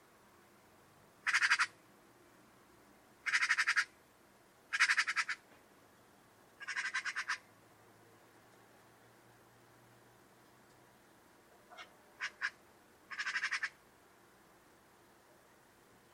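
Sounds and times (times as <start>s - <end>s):
buzzy harsh bird call: 1.2s - 1.8s, 3.3s - 3.9s, 4.7s - 5.4s, 6.6s - 7.4s, 11.8s - 13.8s.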